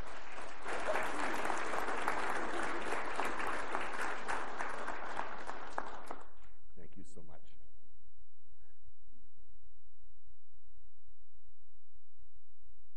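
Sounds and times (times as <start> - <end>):
church congregation applauding: 0.0 - 6.5.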